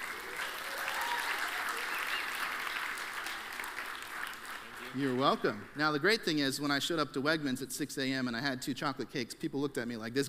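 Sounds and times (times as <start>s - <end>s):
church audience applauding a chocolate cake prize winner: 0.0s - 6.1s
speech: 4.9s - 10.2s.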